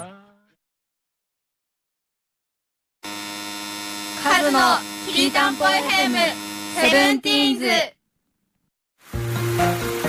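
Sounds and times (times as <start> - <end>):
speech: 4.4 - 8.0
rain: 9.0 - 10.0.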